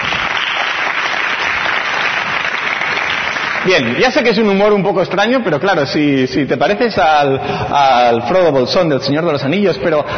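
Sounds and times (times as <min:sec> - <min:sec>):
audience clapping: 0:00.0 - 0:04.6
speech: 0:03.6 - 0:10.1.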